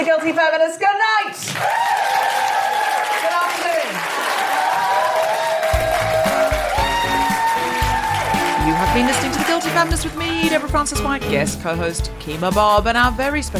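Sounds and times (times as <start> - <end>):
speech: 0.0 - 2.3, 8.7 - 13.5
live audience applause at a comedy show recording: 1.4 - 11.2.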